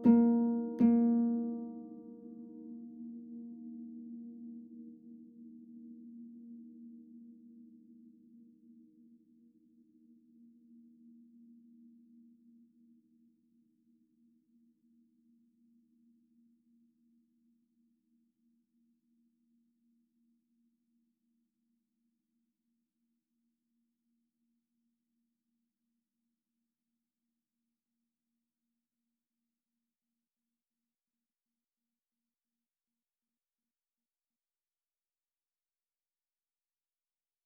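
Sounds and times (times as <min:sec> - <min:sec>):
sine wave tones: 0:01.1 - 0:21.2.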